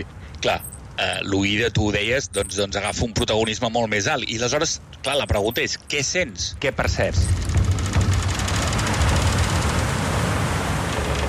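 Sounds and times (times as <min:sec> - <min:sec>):
speech: 0:00.0 - 0:07.6
ship hull cutting through sea water: 0:06.8 - 0:11.2.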